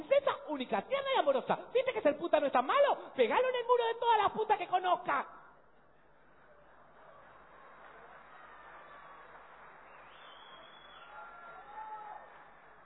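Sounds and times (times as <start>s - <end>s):
speech: 0.6s - 5.4s
audience applauding: 6.3s - 12.8s
brief high cheer: 6.5s - 12.8s.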